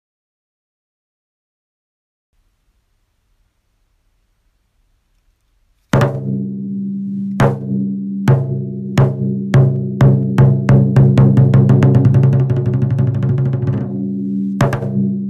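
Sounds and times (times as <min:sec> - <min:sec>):
taiko drums: 0:06.0 - 0:06.6, 0:07.2 - 0:15.2.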